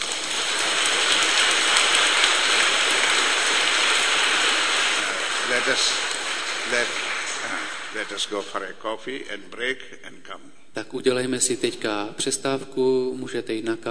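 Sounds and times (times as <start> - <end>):
audience clapping hands: 0.0 - 8.7
speech: 5.6 - 6.1, 6.7 - 7.0, 7.9 - 13.9.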